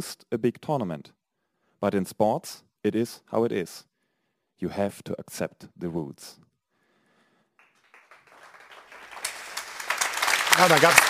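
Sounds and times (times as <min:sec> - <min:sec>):
speech: 0:00.0 - 0:01.2, 0:01.8 - 0:03.9, 0:04.6 - 0:06.5, 0:10.6 - 0:11.0
audience applause: 0:07.6 - 0:11.0.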